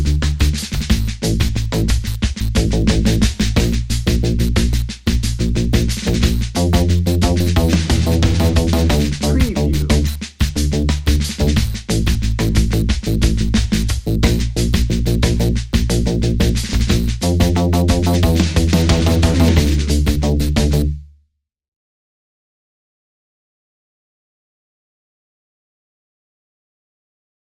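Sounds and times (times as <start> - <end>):
somber drum and bass music: 0.0 - 20.9.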